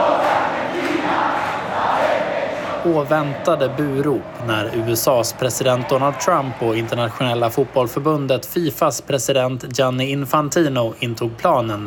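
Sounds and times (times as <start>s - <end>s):
Argentine fans singing together: 0.0s - 4.5s
speech: 2.8s - 11.8s.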